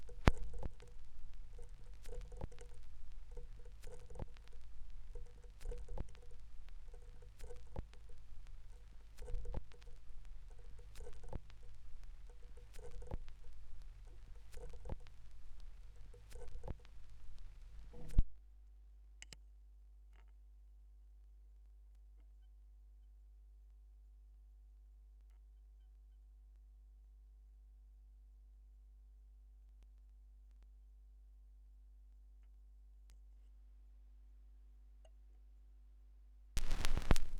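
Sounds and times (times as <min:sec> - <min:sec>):
vinyl record noise: 0:00.0 - 0:18.4, 0:36.6 - 0:37.3.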